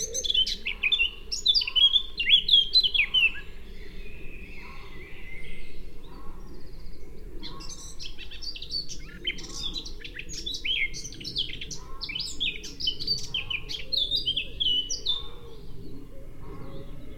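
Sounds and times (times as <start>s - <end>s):
Eurasian blackcap warbling song: 0.0s - 3.6s, 7.4s - 15.6s.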